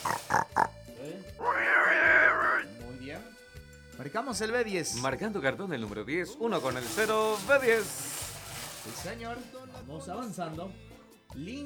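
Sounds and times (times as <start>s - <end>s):
pig grunting and squealing sound effect: 0.0s - 0.8s, 1.4s - 2.7s
speech: 4.0s - 8.1s, 9.0s - 11.6s.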